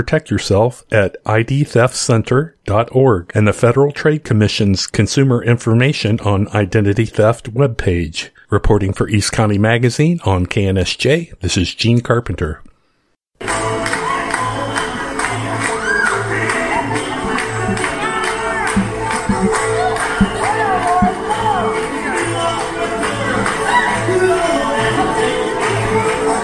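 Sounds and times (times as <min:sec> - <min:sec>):
speech: 0:00.0 - 0:12.7
crowd at the Ramona Grape Stomping Competition: 0:13.4 - 0:26.4.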